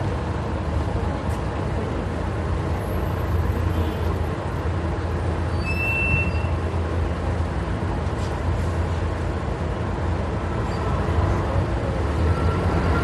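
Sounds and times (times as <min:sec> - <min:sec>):
city transit bus: 0:00.0 - 0:13.0.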